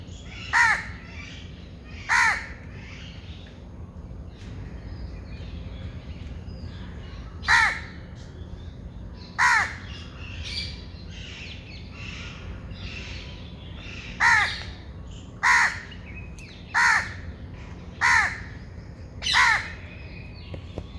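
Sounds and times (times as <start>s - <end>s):
bird cawing: 0.4s - 1.0s, 2.1s - 2.6s, 7.4s - 8.0s, 9.4s - 10.0s, 14.2s - 14.7s, 15.4s - 16.0s, 16.8s - 17.3s, 18.0s - 18.6s, 19.2s - 19.8s.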